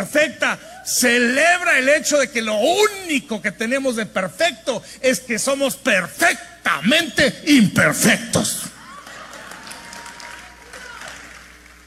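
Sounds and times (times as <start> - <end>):
speech: 0.5 - 8.6
thin scattered audience applause: 8.8 - 11.8.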